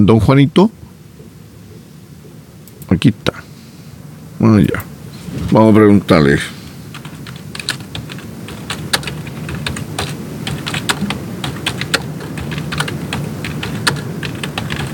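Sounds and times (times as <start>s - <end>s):
speech: 0.0s - 0.8s, 2.9s - 3.4s, 4.4s - 4.9s, 5.5s - 6.6s
rapid typing of a message on a computer keyboard: 6.8s - 14.9s.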